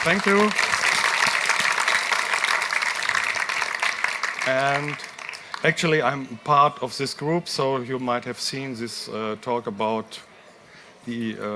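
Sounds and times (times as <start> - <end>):
speech: 0.0 - 0.7, 4.5 - 10.3, 11.1 - 11.5
audience applause: 0.0 - 5.9.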